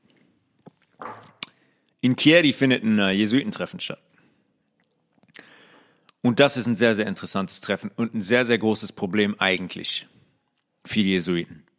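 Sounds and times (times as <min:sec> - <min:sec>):
speech: 0:02.0 - 0:04.1, 0:06.2 - 0:10.2, 0:10.8 - 0:11.7
sipping a drink and swallowing: 0:04.6 - 0:05.4.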